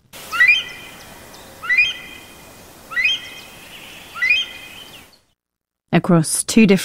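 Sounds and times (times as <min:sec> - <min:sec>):
Himalayan monal pheasant call: 0:00.2 - 0:05.2
speech: 0:06.0 - 0:06.8.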